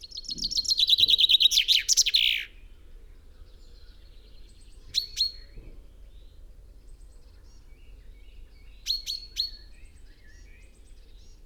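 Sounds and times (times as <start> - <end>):
common chaffinch Fringilla coelebs singing: 0.1 - 2.5.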